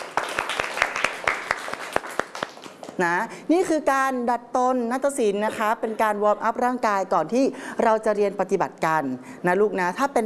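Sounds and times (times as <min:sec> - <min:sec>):
students clapping for themselves in a Thai classical dance class: 0:00.0 - 0:03.0
speech: 0:03.0 - 0:10.2.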